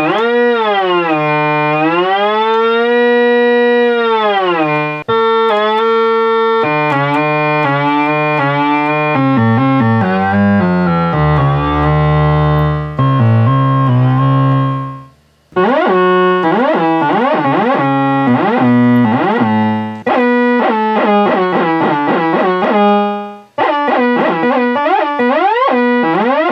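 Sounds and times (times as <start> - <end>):
bass synthesizer: 0.0 - 26.5.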